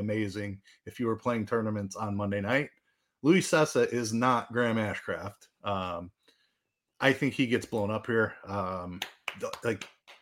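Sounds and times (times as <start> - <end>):
speech: 0.0 - 6.2, 7.0 - 10.0
small light hand claps: 8.8 - 10.2.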